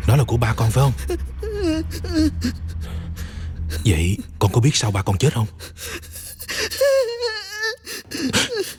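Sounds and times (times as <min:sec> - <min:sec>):
speech: 0:00.1 - 0:02.7, 0:03.8 - 0:06.1
child crying: 0:00.7 - 0:03.1, 0:05.8 - 0:08.7.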